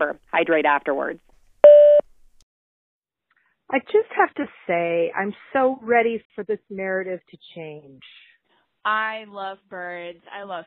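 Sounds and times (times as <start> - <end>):
speech: 0.0 - 1.3, 3.7 - 10.6
voicemail electronic beep: 1.6 - 2.0.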